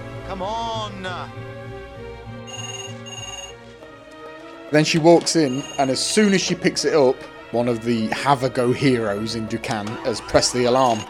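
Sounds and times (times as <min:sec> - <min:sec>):
speech: 0:00.3 - 0:02.0, 0:04.7 - 0:11.0
telephone ringing unanswered: 0:02.5 - 0:03.6, 0:05.4 - 0:06.2, 0:10.7 - 0:11.0.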